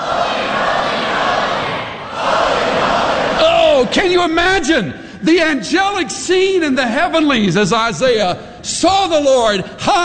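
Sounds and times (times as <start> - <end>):
large crowd screaming and shouting: 0.0 - 4.3
speech: 3.9 - 10.0.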